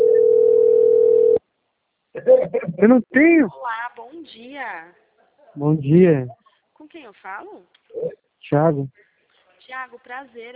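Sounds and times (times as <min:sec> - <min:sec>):
telephone tone for an incoming call: 0:00.0 - 0:01.4
speech: 0:02.4 - 0:05.0, 0:05.6 - 0:09.0, 0:09.7 - 0:10.5.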